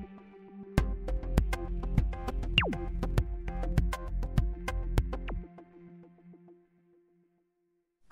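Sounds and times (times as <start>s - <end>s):
drums: 0.8s - 5.2s.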